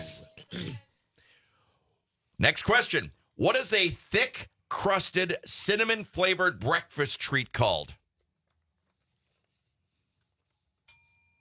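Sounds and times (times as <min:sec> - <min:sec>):
speech: 0:02.4 - 0:08.0
soft quiz bell ding: 0:10.9 - 0:11.4.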